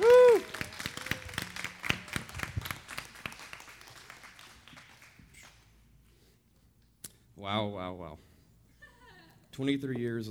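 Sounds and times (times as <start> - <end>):
audience applause welcoming a speaker to the platform: 0.0 - 5.6
speech: 7.5 - 8.3, 9.6 - 10.3.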